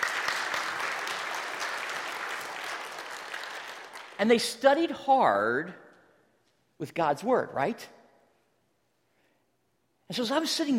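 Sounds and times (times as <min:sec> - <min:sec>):
audience applause: 0:00.0 - 0:04.3
speech: 0:04.2 - 0:05.8, 0:06.8 - 0:08.0, 0:10.1 - 0:10.7.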